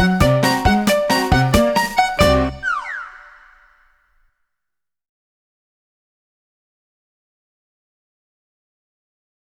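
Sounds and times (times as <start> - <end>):
noisy accordion: 0.0 - 3.2.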